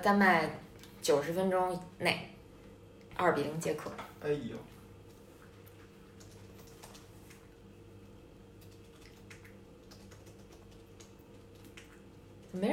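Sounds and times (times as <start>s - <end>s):
speech: 0.0s - 2.4s, 3.2s - 4.7s, 12.5s - 12.7s
low hum: 0.0s - 12.7s
typing on a computer keyboard: 6.2s - 7.1s, 8.6s - 12.5s.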